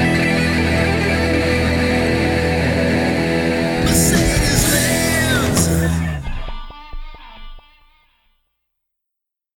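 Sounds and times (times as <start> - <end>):
karaoke harmony full mix: 0.0 - 7.4.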